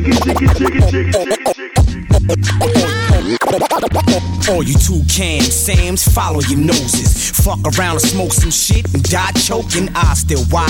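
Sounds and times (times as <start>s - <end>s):
DJ turntable scratching: 0.0s - 4.2s, 6.7s - 10.6s
music beat with steady low bass tone: 0.0s - 10.6s
speech: 0.0s - 10.6s.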